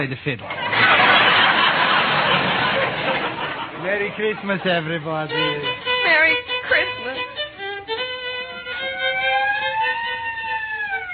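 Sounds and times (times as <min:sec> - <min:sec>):
speech: 0:00.0 - 0:01.0, 0:03.8 - 0:06.9
laughter: 0:00.2 - 0:05.7, 0:08.5 - 0:11.1
police squad car siren wailing: 0:08.4 - 0:11.1.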